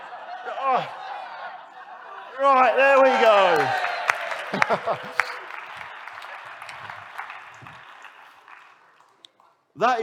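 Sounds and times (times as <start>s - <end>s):
laughter: 0.0s - 8.1s
speech: 0.4s - 1.0s, 2.4s - 3.9s, 4.6s - 5.3s, 9.8s - 10.0s
audience cheering and applause: 2.4s - 9.2s.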